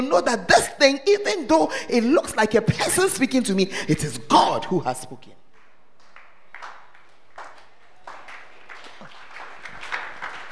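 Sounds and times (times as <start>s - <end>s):
speech: 0.0s - 5.4s
audience clapping: 5.6s - 10.5s.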